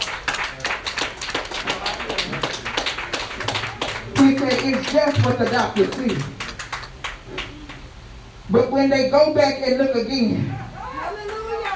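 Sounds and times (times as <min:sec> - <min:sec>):
church congregation clapping hands during a sermon: 0:00.0 - 0:07.9
speech: 0:04.4 - 0:06.4, 0:08.5 - 0:10.6.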